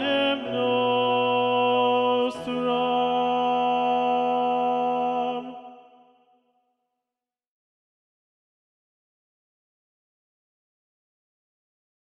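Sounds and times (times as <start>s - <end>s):
tenor singing a mass movement: 0.0s - 6.1s.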